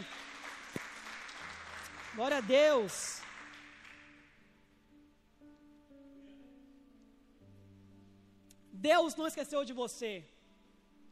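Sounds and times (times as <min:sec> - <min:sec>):
audience applause: 0:00.0 - 0:04.2
speech: 0:02.2 - 0:03.2, 0:08.8 - 0:10.4.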